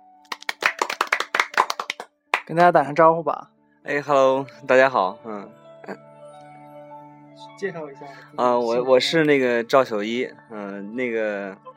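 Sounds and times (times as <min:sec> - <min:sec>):
hand claps: 0:00.2 - 0:02.6
speech: 0:02.5 - 0:06.1, 0:07.4 - 0:11.7.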